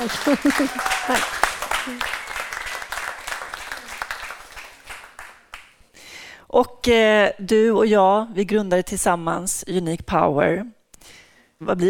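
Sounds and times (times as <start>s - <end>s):
speech: 0.0s - 2.2s, 6.5s - 11.8s
laughter: 0.0s - 2.3s
audience applause: 0.0s - 5.8s.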